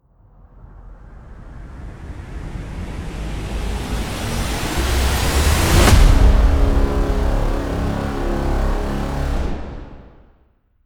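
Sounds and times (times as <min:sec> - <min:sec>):
alarming trailer impact: 0:03.2 - 0:10.3.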